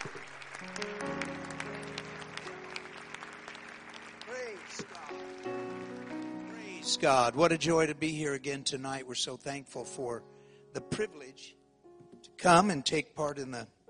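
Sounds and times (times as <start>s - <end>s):
audience clapping: 0.0s - 7.8s
sustained organ-like chords: 0.0s - 13.0s
person's voice: 6.5s - 10.2s, 10.8s - 11.6s, 12.3s - 13.8s
speech: 7.0s - 11.6s, 12.4s - 13.8s.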